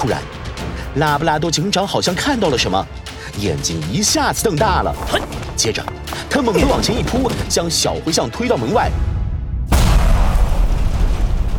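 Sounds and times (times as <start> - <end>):
speech: 0.0 - 0.4, 1.0 - 9.1
loud explosion from a kitchen: 9.4 - 11.5.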